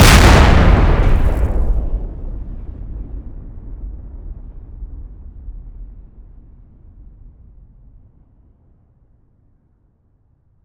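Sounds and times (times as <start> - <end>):
explosion: 0.0 - 4.1.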